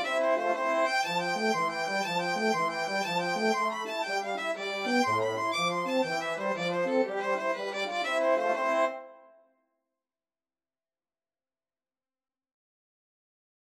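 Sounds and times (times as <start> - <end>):
Irish jig medley played by mixed ensemble of three players: 0.3 - 8.9.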